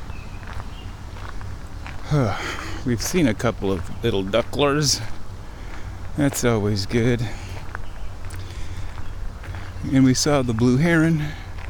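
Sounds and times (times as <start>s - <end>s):
footsteps walking outdoors on a windy day: 0.0s - 11.6s
speech: 2.1s - 5.2s, 6.2s - 7.4s, 9.9s - 11.4s.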